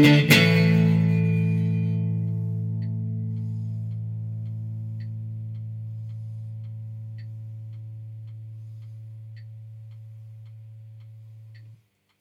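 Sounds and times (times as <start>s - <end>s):
guitar reverb send through Eventide Tverb: 0.0s - 4.4s.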